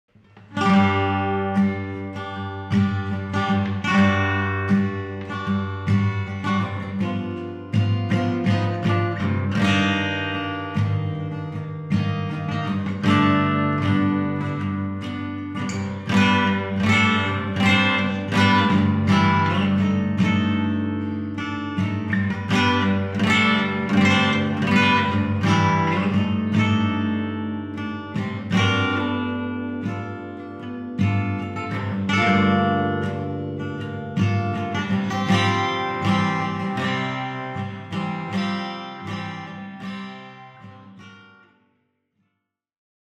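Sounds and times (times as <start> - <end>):
acoustic music: 0.1 - 41.6.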